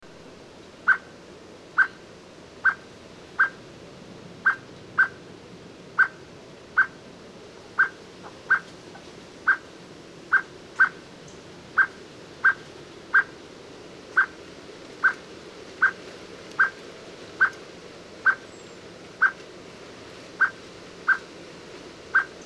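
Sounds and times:
background hiss: 0:00.0 - 0:22.4
Eurasian blackbird call notes: 0:00.9 - 0:01.2, 0:01.8 - 0:02.0, 0:02.6 - 0:02.8, 0:03.4 - 0:03.6, 0:04.4 - 0:05.2, 0:06.0 - 0:06.2, 0:06.8 - 0:07.0, 0:07.8 - 0:08.7, 0:09.5 - 0:09.7, 0:10.3 - 0:13.4, 0:14.1 - 0:14.4, 0:15.0 - 0:15.2, 0:15.8 - 0:16.0, 0:16.6 - 0:16.8, 0:18.2 - 0:19.4, 0:20.4 - 0:21.3, 0:22.1 - 0:22.4.

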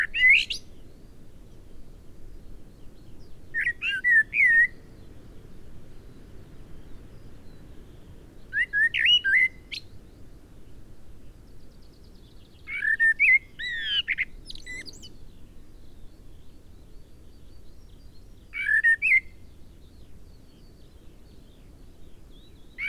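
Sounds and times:
Eurasian blackbird song: 0:00.0 - 0:00.8, 0:03.0 - 0:05.4, 0:06.0 - 0:10.1, 0:11.8 - 0:16.4, 0:17.3 - 0:22.8.

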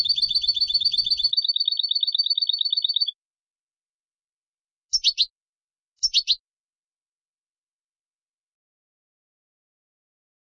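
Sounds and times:
Carduelis carduelis European goldfinch dry rattling trills: 0:00.0 - 0:03.1, 0:04.9 - 0:05.3, 0:06.0 - 0:06.4.

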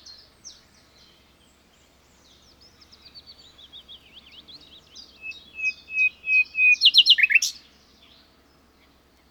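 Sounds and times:
common nightingale singing: 0:03.6 - 0:07.6.

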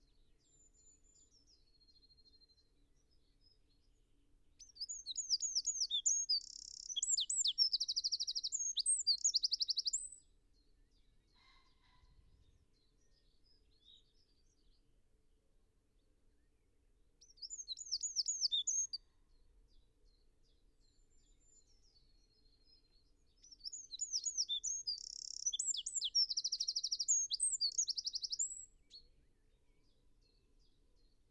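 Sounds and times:
Eurasian wren song: 0:04.6 - 0:10.2, 0:17.2 - 0:19.0, 0:23.4 - 0:29.2.

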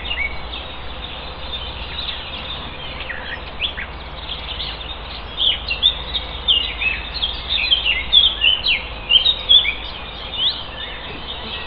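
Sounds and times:
Eurasian blackcap calling: 0:00.0 - 0:11.6.

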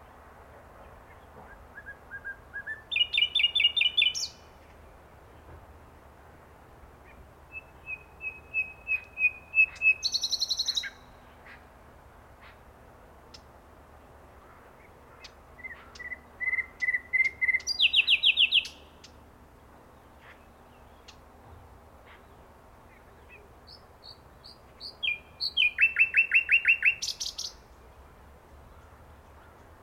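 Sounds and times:
common nightingale song of whistles and trills: 0:01.5 - 0:04.5, 0:07.5 - 0:11.1, 0:15.6 - 0:18.9, 0:24.0 - 0:27.6.

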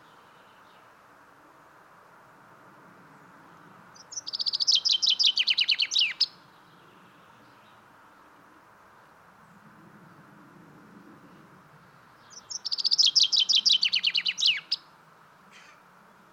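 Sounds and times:
common chaffinch singing: 0:03.9 - 0:07.8, 0:12.1 - 0:14.9.

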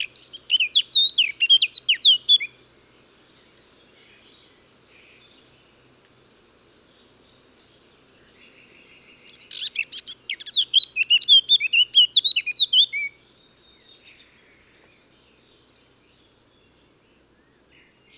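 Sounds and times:
Eurasian blackcap (Sylvia atricapilla) singing: 0:00.0 - 0:02.5, 0:09.2 - 0:13.2.

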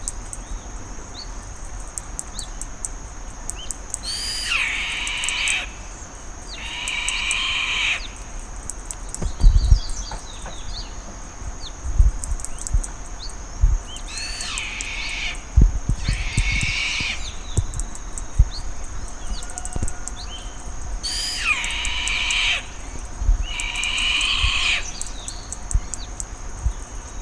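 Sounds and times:
faint chirps: 0:03.4 - 0:27.2
bird harsh hissing screech: 0:04.1 - 0:05.7, 0:06.6 - 0:08.2, 0:14.1 - 0:15.4, 0:16.0 - 0:17.4, 0:21.0 - 0:22.8, 0:23.4 - 0:25.0
dull low thumps and knocks: 0:11.9 - 0:12.9, 0:15.5 - 0:18.6.

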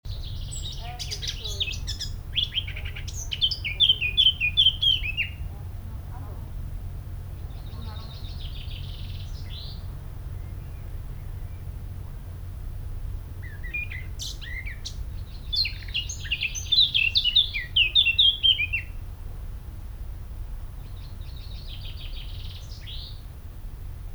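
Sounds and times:
Eurasian blackcap warbling song: 0:00.1 - 0:05.5, 0:07.4 - 0:11.7, 0:13.4 - 0:19.0.

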